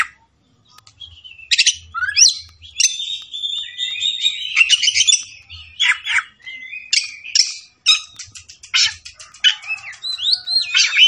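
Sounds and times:
Oriental magpie-robin singing: 0.8s - 9.1s.

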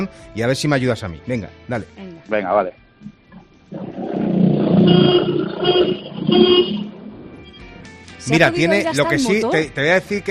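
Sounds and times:
speech: 0.0s - 3.2s, 8.3s - 10.2s
very short car horn honks: 4.9s - 6.9s.

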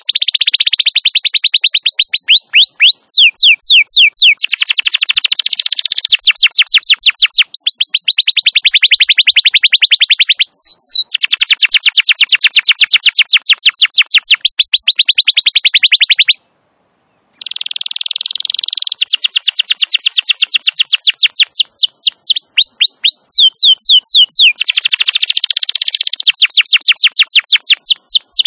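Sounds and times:
canary singing: 0.0s - 16.4s, 17.3s - 28.4s.

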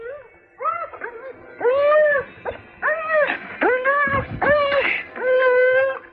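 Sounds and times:
frightened trembling dog whimpering beside its doghouse on a cold night: 0.0s - 6.1s.

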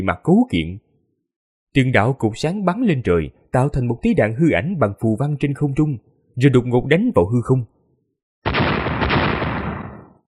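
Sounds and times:
speech: 0.0s - 0.8s, 1.7s - 7.7s
booming explosion: 8.5s - 10.2s.

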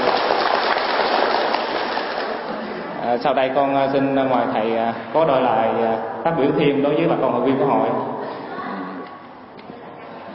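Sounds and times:
crowd applauding: 0.0s - 2.5s
speech: 3.2s - 8.4s.

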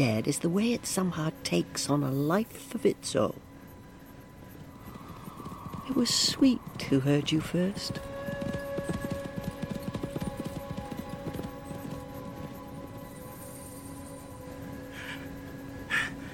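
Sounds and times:
speech: 0.0s - 3.5s, 5.9s - 8.6s
horses: 2.8s - 13.2s.

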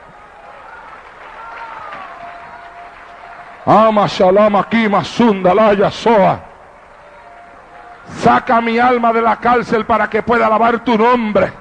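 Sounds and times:
audience applauding: 0.0s - 9.2s
speech: 3.6s - 6.5s, 8.2s - 11.5s.

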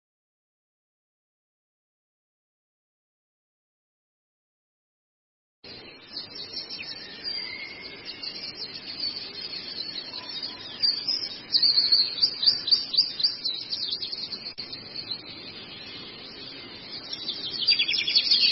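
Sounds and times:
steady hiss: 5.7s - 18.4s
Long-tailed shrike chattering song: 5.8s - 18.4s.

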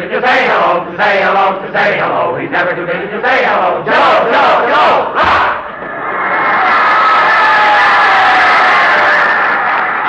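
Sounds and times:
speech: 0.2s - 5.6s
football fans cheering an ovation for a player: 3.8s - 10.0s.

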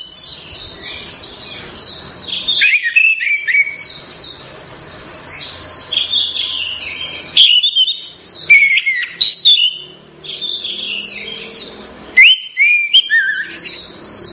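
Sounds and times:
orange-headed thrush song of slurred whistles: 2.5s - 3.9s, 7.3s - 9.9s, 12.2s - 13.6s.

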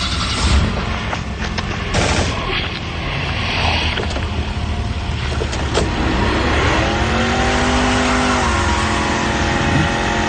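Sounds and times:
sharp cracking bangs: 0.0s - 2.8s
old coupé car engine revving and speeding off on asphalt: 0.0s - 10.2s
road noise rumbling: 0.0s - 10.2s.

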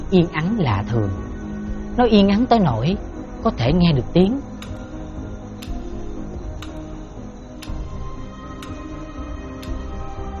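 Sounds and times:
speech: 0.1s - 1.2s, 2.0s - 4.8s
clock ticking at night in a hospital room: 4.5s - 8.9s, 9.6s - 9.9s.

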